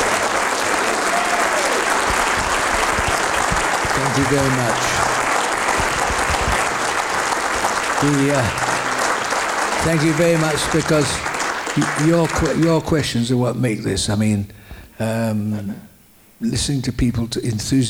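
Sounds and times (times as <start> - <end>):
audience applause: 0.0 - 13.2
speech: 4.2 - 5.1, 8.0 - 8.6, 9.8 - 17.8.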